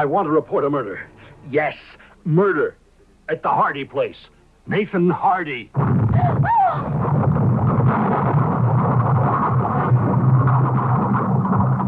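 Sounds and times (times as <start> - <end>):
speech: 0.0 - 7.0
fire blazing through a laboratory: 6.8 - 11.8.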